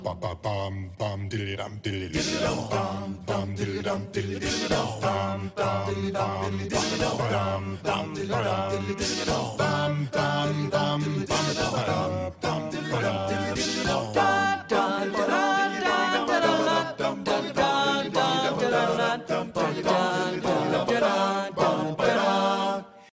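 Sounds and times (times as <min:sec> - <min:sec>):
a cappella singing: 0:00.0 - 0:23.1.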